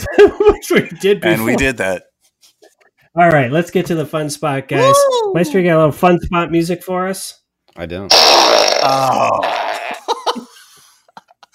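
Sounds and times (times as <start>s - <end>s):
laughter: 0.0s - 1.9s, 8.9s - 11.5s
speech: 0.2s - 2.1s, 3.2s - 9.8s
fart sound effect from a soundboard button: 8.1s - 10.0s.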